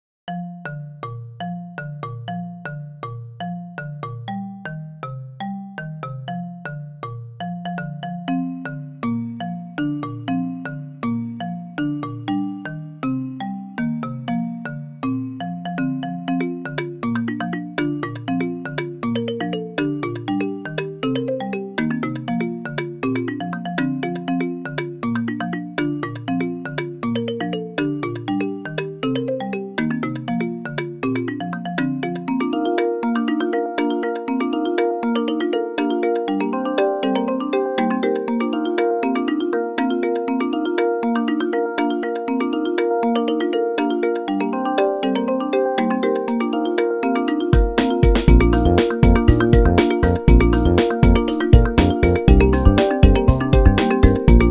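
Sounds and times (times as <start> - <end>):
xylophone: 0.3 - 54.4.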